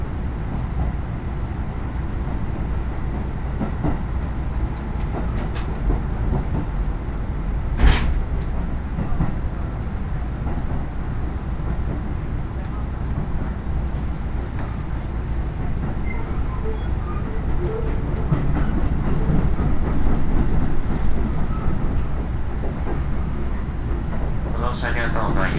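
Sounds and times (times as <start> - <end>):
313 series two-car train running on the Iida Line from Tatsuno to Inashi: 0.0 - 25.5.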